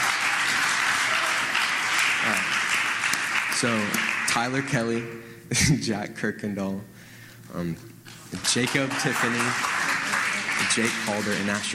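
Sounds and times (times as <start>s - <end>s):
audience applause: 0.0s - 4.7s, 8.4s - 11.7s
speech: 3.6s - 9.8s, 10.6s - 11.7s.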